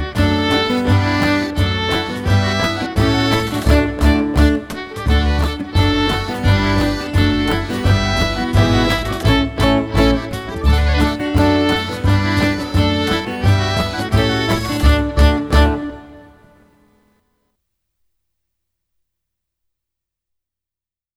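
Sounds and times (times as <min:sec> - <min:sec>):
polka on violin: 0:00.0 - 0:16.6.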